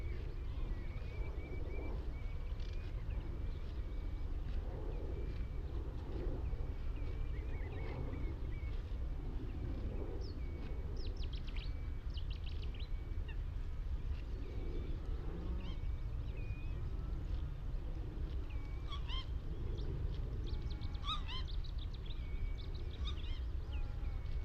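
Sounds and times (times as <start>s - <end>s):
skylarks circling above farmland: 0.0s - 24.4s
lapwings calling on Higham Marshes: 18.8s - 19.3s
geese calling on Higham Marshes: 20.8s - 21.5s.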